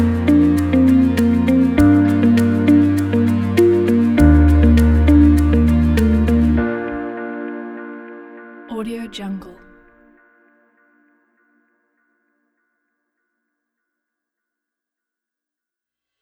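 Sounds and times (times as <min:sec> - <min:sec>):
positive upbeat music: 0:00.0 - 0:07.5.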